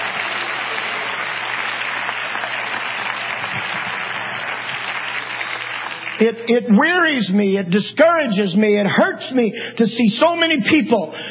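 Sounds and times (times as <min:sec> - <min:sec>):
audience clapping hands: 0:00.0 - 0:07.2
speech: 0:06.2 - 0:11.2.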